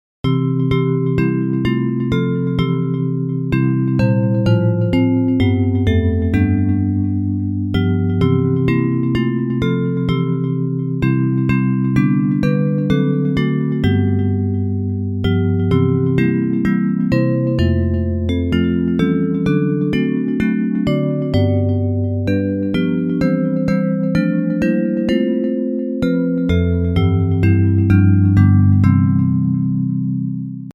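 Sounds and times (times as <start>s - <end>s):
bells playing a hymn: 0.3s - 29.5s.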